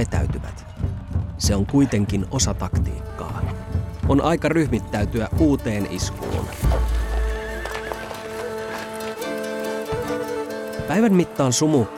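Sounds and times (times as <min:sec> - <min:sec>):
galloping hooves of cavalry horses: 0:00.7 - 0:11.0
speech: 0:01.4 - 0:03.5, 0:04.1 - 0:06.6, 0:10.9 - 0:11.9
cavalry horses neighing: 0:06.3 - 0:10.8.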